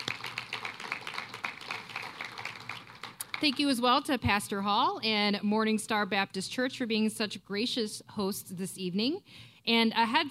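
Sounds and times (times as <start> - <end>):
audience round of applause: 0.0 - 3.6
speech: 3.4 - 10.2.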